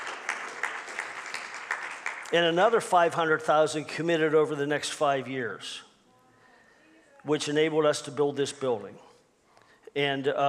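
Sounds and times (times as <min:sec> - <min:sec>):
audience applause: 0:00.0 - 0:02.3
speech: 0:02.3 - 0:05.9, 0:07.2 - 0:09.1, 0:10.0 - 0:10.4.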